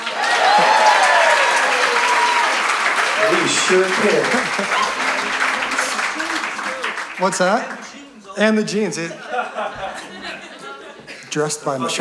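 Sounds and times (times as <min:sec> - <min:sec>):
audience applause: 0:00.0 - 0:08.2
laughter: 0:00.0 - 0:11.9
speech: 0:03.3 - 0:05.1, 0:07.2 - 0:10.1, 0:11.4 - 0:11.9.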